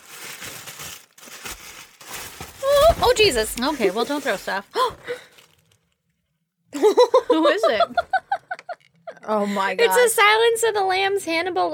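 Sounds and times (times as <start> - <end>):
wrapping crinkling as a package is opened: 0.0 - 6.1
speech: 3.0 - 5.2, 7.4 - 8.1, 9.3 - 11.7.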